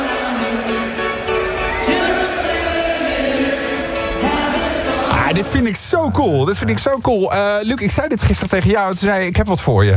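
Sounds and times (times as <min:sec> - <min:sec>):
large audience roaring and chanting: 0:00.0 - 0:07.0
speech: 0:05.4 - 0:09.9.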